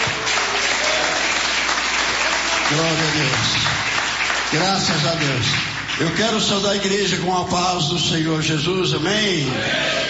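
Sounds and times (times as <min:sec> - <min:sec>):
standing church congregation clapping: 0:00.0 - 0:07.8
speech: 0:02.7 - 0:03.8, 0:04.5 - 0:10.0.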